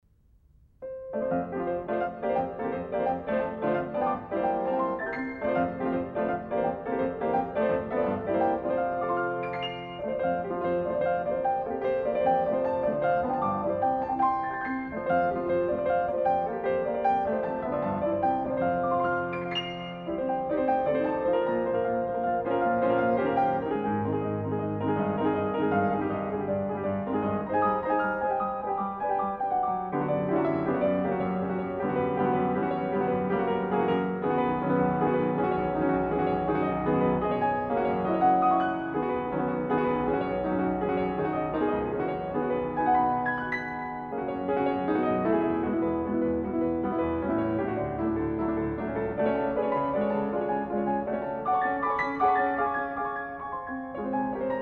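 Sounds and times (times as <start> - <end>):
piano etude in F major: 0.0 - 54.6.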